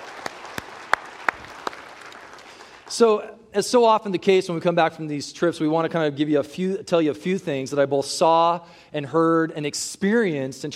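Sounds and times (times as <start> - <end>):
audience applause: 0.0 - 2.9
speech: 2.9 - 10.7.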